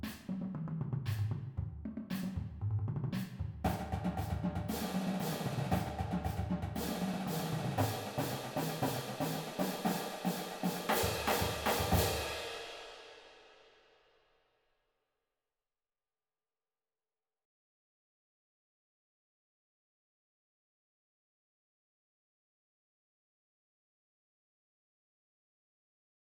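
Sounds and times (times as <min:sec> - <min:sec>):
full drumline playing: 0:00.0 - 0:12.3.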